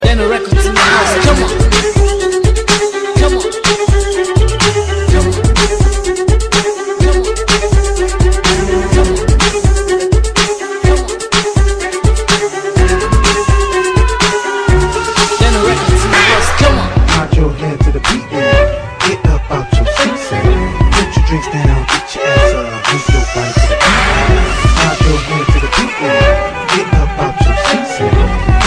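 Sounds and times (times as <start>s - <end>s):
hip hop violin music: 0.0s - 28.6s.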